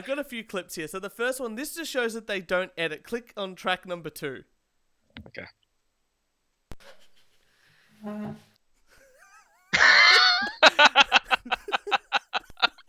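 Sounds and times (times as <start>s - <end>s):
speech: 0.0s - 4.5s, 5.2s - 5.6s, 8.0s - 8.5s
chair squeaking and creaking: 7.9s - 8.6s
laughter: 8.9s - 12.8s.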